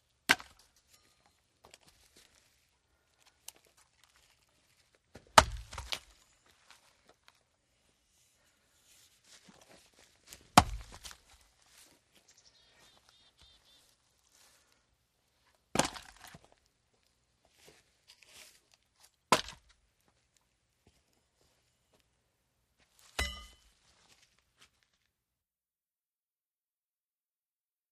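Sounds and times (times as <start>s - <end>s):
axe splitting logs outdoors: 0.3s - 0.7s, 5.1s - 6.1s, 10.5s - 11.2s, 15.7s - 16.5s, 19.3s - 19.7s.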